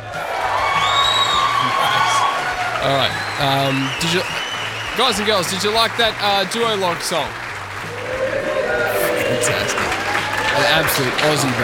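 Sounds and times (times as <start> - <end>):
large studio audience cheering and whooping: 0.0 - 11.6
speech: 2.8 - 4.4, 5.0 - 7.4, 9.4 - 11.6
high-pitched shrieks and yells: 7.9 - 10.6.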